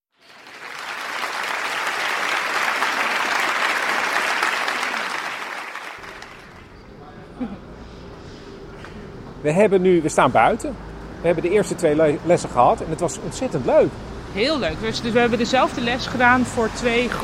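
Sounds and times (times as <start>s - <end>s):
audience applause after a concert: 0.1s - 6.7s
speech: 9.4s - 17.2s.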